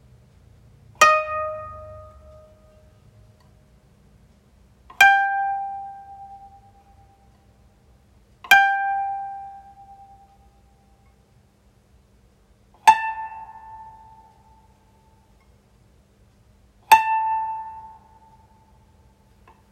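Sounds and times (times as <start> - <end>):
koto tuning notes in hirajoshi from ichikotsu with ninth string raised: 0.8 - 3.7, 4.8 - 11.2, 12.7 - 15.5, 16.8 - 19.7.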